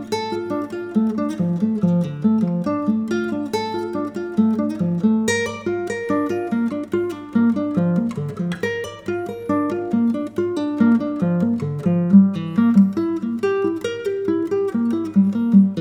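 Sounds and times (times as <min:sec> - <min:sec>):
classical guitar solo triad study: 0:00.0 - 0:15.7.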